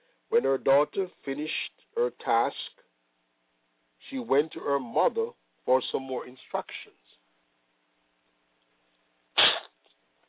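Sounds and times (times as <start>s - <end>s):
speech: 0.3s - 2.6s, 4.1s - 7.0s
harsh cough from a cold: 9.4s - 9.7s
sniff: 9.4s - 9.7s.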